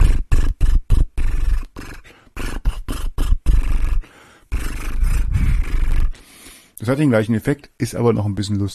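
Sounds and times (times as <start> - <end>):
lip trill with a melody: 0.0 - 6.2
speech: 6.9 - 8.7.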